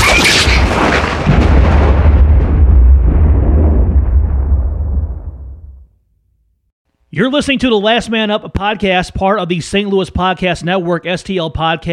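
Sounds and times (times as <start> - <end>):
explosive boom audio stinger: 0.0 - 6.0
speech: 7.2 - 11.9.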